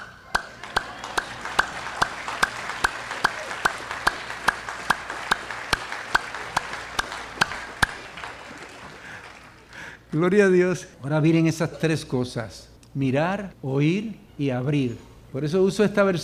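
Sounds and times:
audience applauding: 0:00.0 - 0:10.2
speech: 0:10.1 - 0:16.2.

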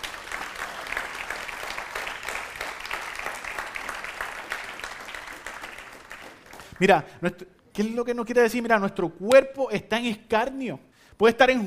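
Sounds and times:
audience applause: 0:00.0 - 0:07.0
speech: 0:06.8 - 0:11.6.

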